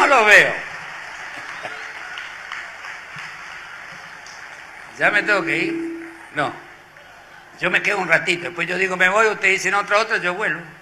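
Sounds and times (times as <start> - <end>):
crowd applause: 0.0 - 7.6
speech: 0.1 - 0.7, 5.0 - 6.6, 7.6 - 10.8.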